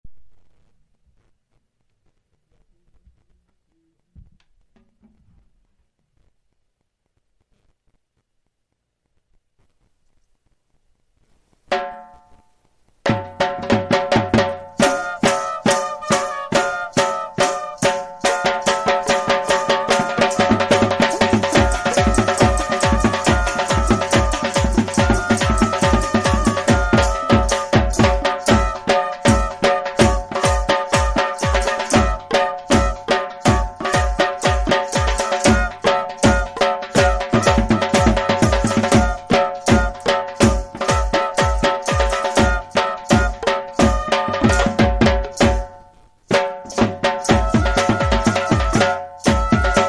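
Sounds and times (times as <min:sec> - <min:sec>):
Punjabi folk beat instrumental: 0:11.2 - 0:49.8.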